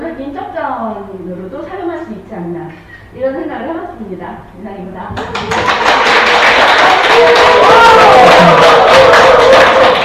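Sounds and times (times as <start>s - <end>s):
speech: 0.8s - 6.4s
group applause: 5.2s - 10.0s.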